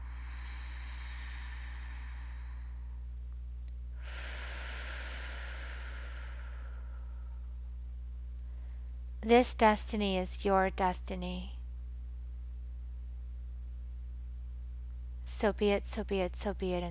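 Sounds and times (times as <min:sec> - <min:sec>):
deep breath during a guided meditation: 0:00.0 - 0:03.1, 0:04.0 - 0:07.6
steady low hum: 0:00.0 - 0:16.9
speech: 0:09.2 - 0:11.6, 0:15.4 - 0:16.9.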